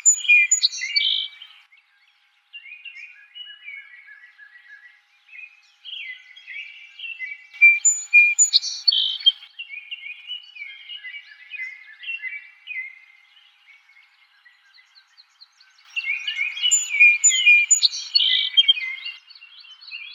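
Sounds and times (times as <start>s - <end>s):
Song Sparrow song: 0.0s - 20.1s.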